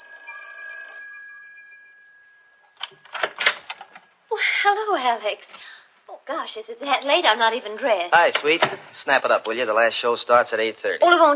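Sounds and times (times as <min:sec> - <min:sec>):
doorbell ringing with a bright sustained metallic tone: 0:00.0 - 0:02.9
speech: 0:04.4 - 0:11.3.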